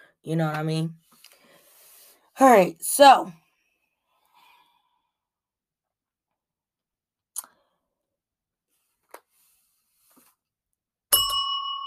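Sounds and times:
speech: 0.2s - 1.1s, 2.4s - 3.4s
bell ringing: 11.1s - 11.8s.

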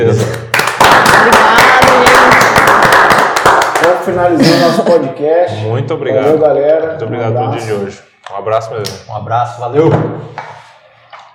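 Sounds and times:
speech: 0.0s - 0.5s, 1.2s - 1.6s, 4.0s - 10.6s
applause: 0.3s - 4.1s.

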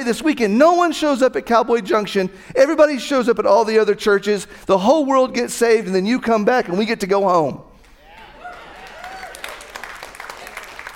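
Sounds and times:
speech: 0.0s - 7.7s
audience applause: 8.1s - 10.9s.

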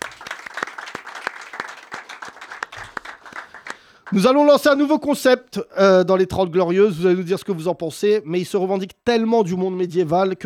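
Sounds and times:
audience applause: 0.0s - 4.2s
speech: 4.1s - 10.4s.

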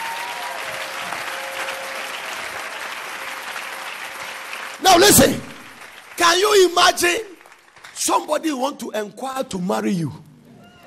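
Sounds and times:
audience clapping: 0.0s - 8.6s
speech: 4.9s - 5.5s, 6.2s - 7.3s, 8.0s - 10.2s.

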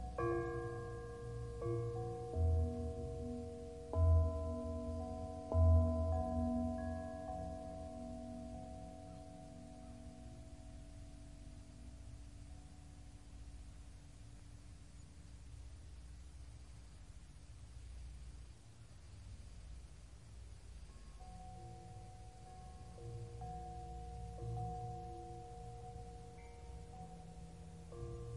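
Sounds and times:
calming bells ringing with long sustained tones: 0.0s - 11.9s, 21.0s - 28.3s
soft steady white noise hiss: 0.0s - 28.3s.

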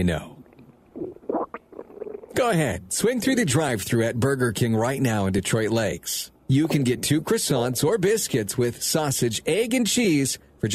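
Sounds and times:
speech: 0.0s - 0.3s, 2.4s - 10.7s
stomach rumbling: 0.4s - 2.4s.

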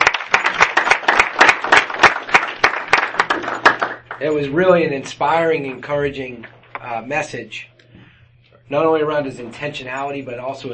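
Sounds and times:
audience applause: 0.0s - 4.2s
speech: 4.2s - 7.7s, 8.7s - 10.7s.

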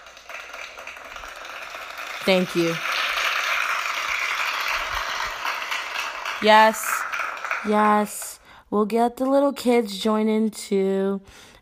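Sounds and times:
applause: 0.0s - 8.4s
speech: 2.2s - 2.9s, 6.4s - 7.0s, 7.6s - 11.5s.

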